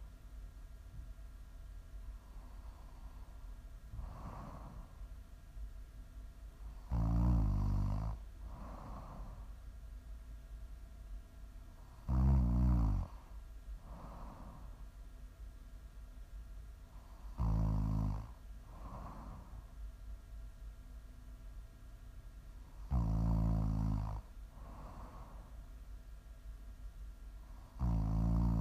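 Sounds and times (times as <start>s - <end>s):
low steady hum: 0.0s - 28.6s
loud snoring: 6.8s - 9.4s, 11.9s - 13.2s, 17.3s - 19.5s, 22.8s - 25.3s, 27.7s - 28.6s.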